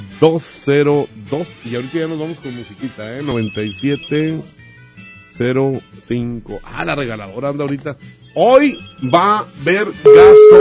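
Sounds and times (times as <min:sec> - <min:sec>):
speech: 0:00.2 - 0:04.6, 0:05.4 - 0:10.6
telephone ringing on outgoing call: 0:10.1 - 0:10.6.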